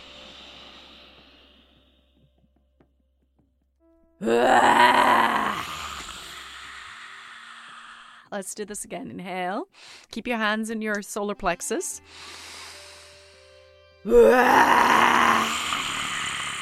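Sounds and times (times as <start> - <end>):
breathy inhale: 0.0 - 2.2, 5.6 - 8.3, 9.7 - 10.1, 12.0 - 13.6
speech: 4.2 - 5.0, 8.3 - 12.5, 14.0 - 15.5
person imitating a lion's roar: 4.2 - 7.1, 14.1 - 16.6.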